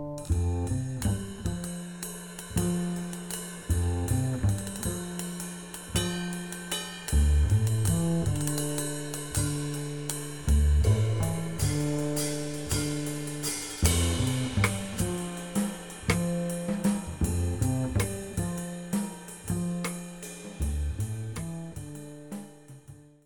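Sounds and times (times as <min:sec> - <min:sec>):
bass drums: 0:00.2 - 0:23.2.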